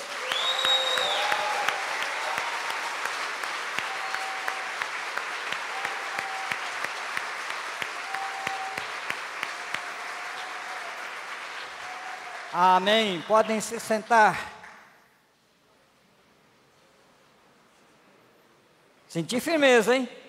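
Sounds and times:
faint tonal voices or cheers: 0.0s - 12.9s
sustained round of applause from a crowd: 0.0s - 14.9s
speech: 12.6s - 14.5s, 19.1s - 20.2s.

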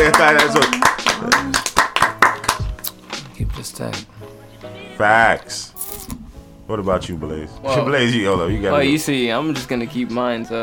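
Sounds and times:
crowd of people clapping: 0.0s - 2.9s
speech: 0.2s - 0.8s, 3.7s - 5.7s, 6.7s - 10.6s.

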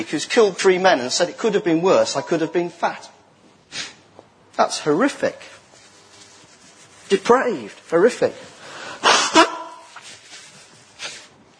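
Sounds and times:
speech: 0.0s - 3.9s, 4.6s - 5.5s, 7.1s - 8.5s
person blowing nose: 3.7s - 4.1s, 8.6s - 11.4s.

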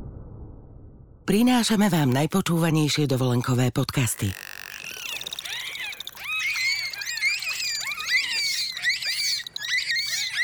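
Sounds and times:
speech: 1.3s - 4.5s
bottlenose dolphins chattering: 3.1s - 10.4s.

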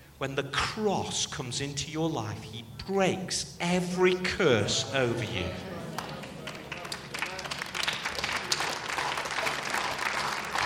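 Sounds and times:
speech: 0.2s - 5.8s
audience applause: 5.8s - 10.6s.

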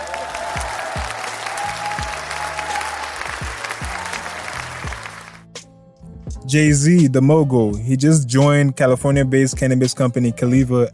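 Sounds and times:
applause: 0.0s - 5.5s
speech: 6.5s - 10.9s.

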